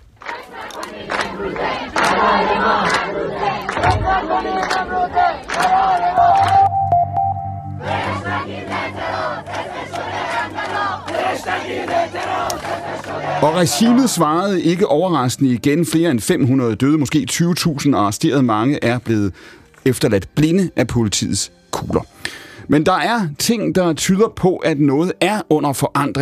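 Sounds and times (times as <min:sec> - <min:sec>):
street protest crowd chanting and shouting: 0:00.2 - 0:06.7, 0:07.7 - 0:14.5
high sustained note: 0:06.2 - 0:11.0
speech: 0:11.7 - 0:26.2.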